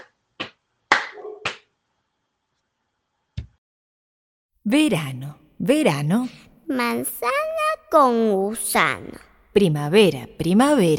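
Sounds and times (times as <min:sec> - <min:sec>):
rhythmic hand claps: 0:00.0 - 0:01.7
slapping on legs: 0:00.0 - 0:01.7
speech: 0:04.7 - 0:10.9.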